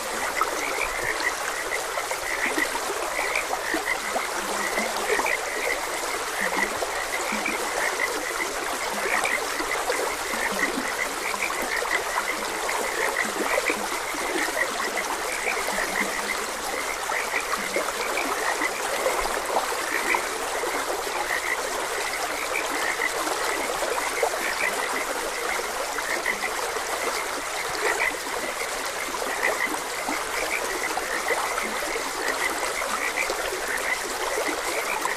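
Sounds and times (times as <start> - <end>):
frog chorus croaking: 0.0 - 35.1
trickling stream water: 0.0 - 35.1.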